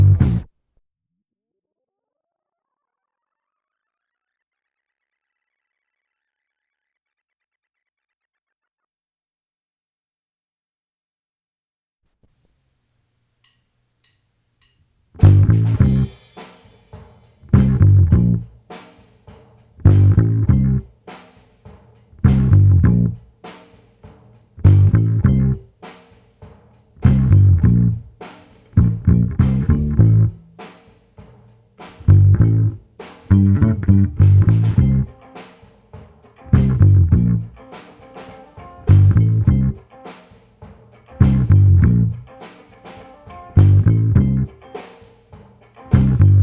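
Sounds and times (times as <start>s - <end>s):
bass: 0.0s - 0.5s, 15.2s - 16.3s, 17.4s - 18.7s, 19.8s - 21.0s, 22.2s - 23.3s, 24.6s - 25.7s, 27.0s - 30.7s, 31.9s - 35.2s, 36.5s - 37.6s, 38.8s - 39.8s, 41.1s - 42.3s, 43.5s - 44.6s, 45.9s - 46.4s.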